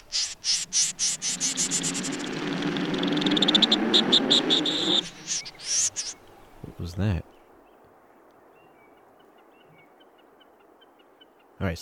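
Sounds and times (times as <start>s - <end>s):
pin-tailed snipe call: 0.0s - 2.3s, 3.0s - 6.2s.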